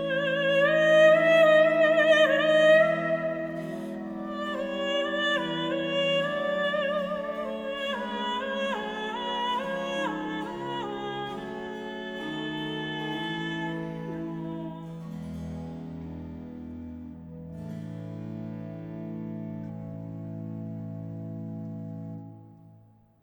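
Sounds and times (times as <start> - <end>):
soprano singing recitative: 0.0 - 15.0.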